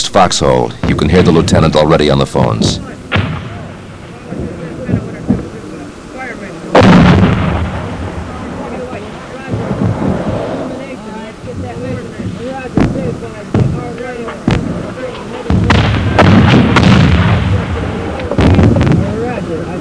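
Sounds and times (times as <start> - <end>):
speech: 0.2 - 3.2
artillery and mortar fire: 0.8 - 1.6, 2.8 - 5.6, 6.7 - 11.0, 11.6 - 19.5.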